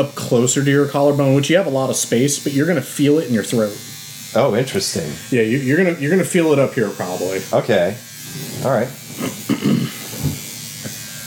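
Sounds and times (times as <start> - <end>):
speech: 0.0 - 9.7
tattoo machine needle buzzing near the collarbone: 0.0 - 11.2.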